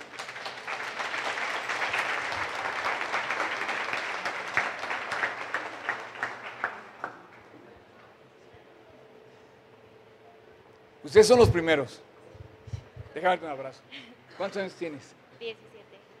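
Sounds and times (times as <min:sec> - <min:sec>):
crowd applause: 0:00.0 - 0:07.5
speech: 0:11.1 - 0:12.1, 0:13.2 - 0:15.7.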